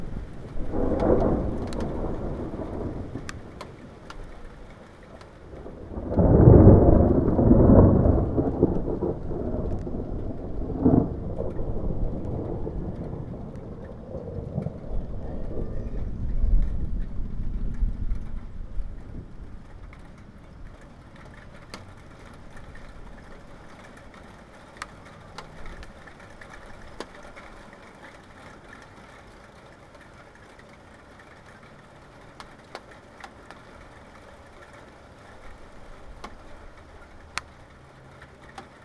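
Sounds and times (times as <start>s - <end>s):
thunderstorm approaching: 0.0s - 27.7s.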